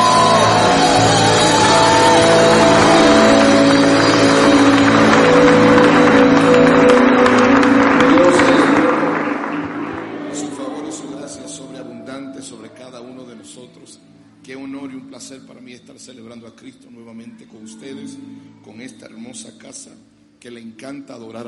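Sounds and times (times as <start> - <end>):
church audience applauding: 0.0 - 11.6
speech: 19.3 - 21.4.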